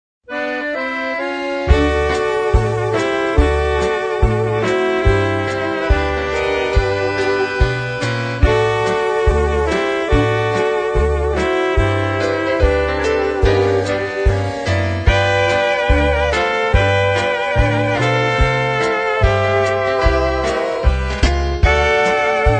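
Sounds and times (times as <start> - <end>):
waltz music: 0.3 - 22.5.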